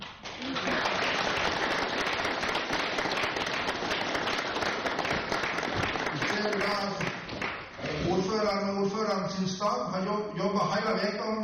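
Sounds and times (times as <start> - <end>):
audience applause: 0.0 - 7.7
speech: 8.5 - 11.4.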